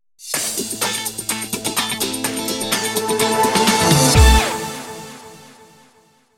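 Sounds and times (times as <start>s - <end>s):
stage entrance jingle: 2.1s - 5.4s.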